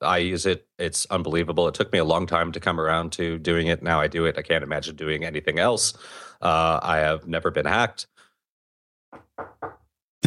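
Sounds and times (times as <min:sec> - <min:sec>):
speech: 0:00.1 - 0:08.2
knocking on wood: 0:09.2 - 0:09.8.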